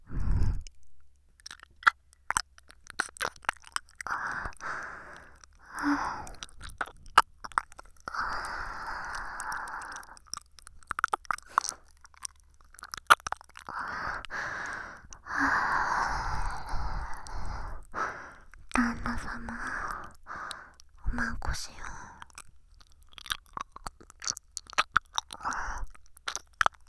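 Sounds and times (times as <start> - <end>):
ear licking: 0.1 - 26.8.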